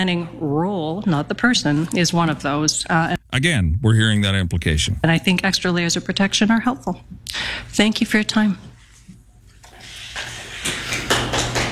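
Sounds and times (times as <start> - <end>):
speech: 0.0 - 8.7
clapping in a council meeting room: 10.8 - 11.7.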